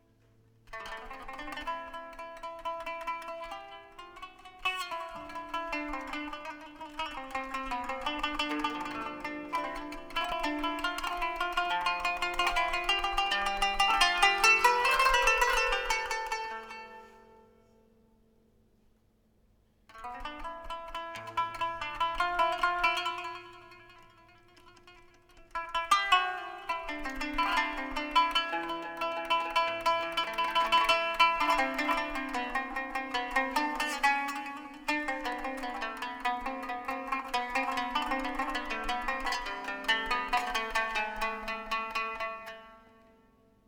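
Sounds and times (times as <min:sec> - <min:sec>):
Turkish kanun sample: 0:00.7 - 0:17.7, 0:19.9 - 0:43.2.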